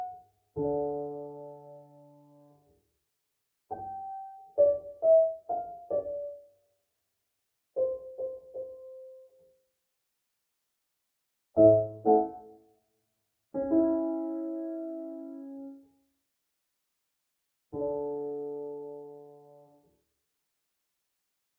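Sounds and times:
piano: 0.0 - 2.9, 3.7 - 6.8, 7.7 - 9.7, 11.6 - 12.8, 13.5 - 16.1, 17.7 - 20.1.

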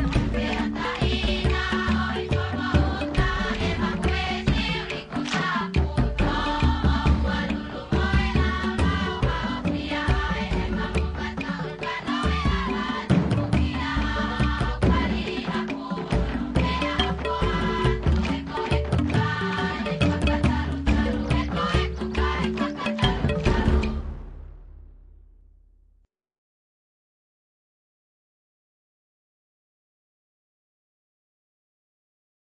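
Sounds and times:
happy village music: 0.0 - 24.6.

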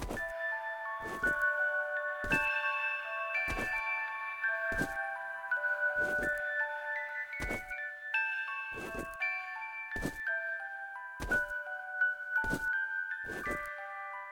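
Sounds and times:
music box melody loop: 0.1 - 14.3.

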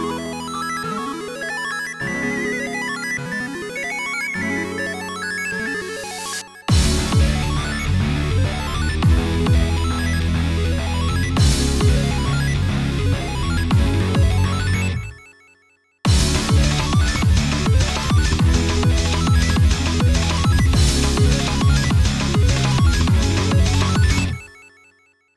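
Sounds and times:
instrumental music: 0.0 - 15.2, 16.1 - 24.5.

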